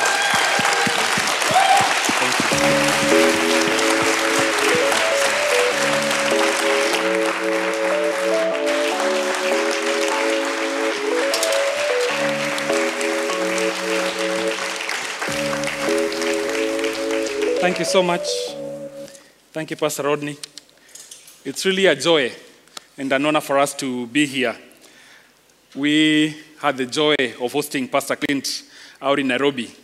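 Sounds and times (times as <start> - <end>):
church congregation applauding to welcome a visiting pastor: 0.0 - 19.1
keyboard chords: 2.2 - 19.1
speech: 17.8 - 18.5, 19.6 - 20.5, 21.4 - 22.4, 23.0 - 24.7, 25.7 - 29.8.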